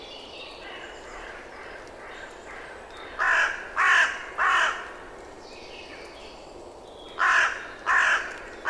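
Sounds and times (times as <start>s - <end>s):
bird giving harsh cawing calls: 0.6s - 5.0s, 7.2s - 8.6s.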